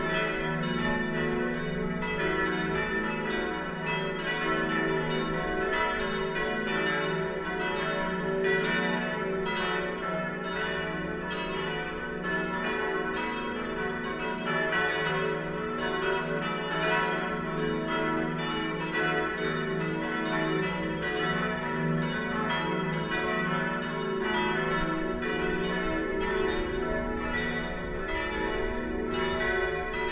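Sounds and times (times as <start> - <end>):
multi-voice bell peal tuned cis1 e1 fis1 a1 h1 cis2: 0.0 - 30.1.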